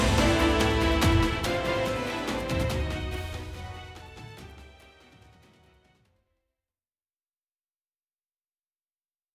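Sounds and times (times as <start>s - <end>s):
ice battle background music: 0.0s - 5.0s.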